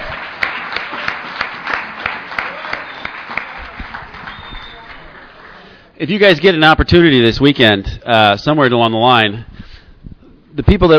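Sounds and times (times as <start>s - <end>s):
audience applause: 0.0s - 5.9s
speech: 6.0s - 9.5s, 10.6s - 10.9s.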